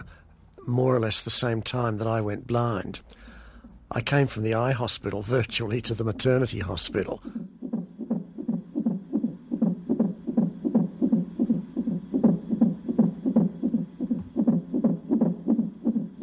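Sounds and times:
speech: 0:00.7 - 0:03.2, 0:03.9 - 0:07.6
fetal heartbeat on a heart monitor: 0:05.7 - 0:16.2.

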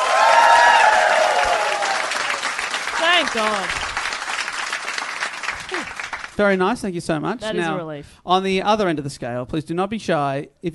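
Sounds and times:
audience applause: 0:00.0 - 0:06.4
speech: 0:03.2 - 0:03.8, 0:06.4 - 0:10.7.

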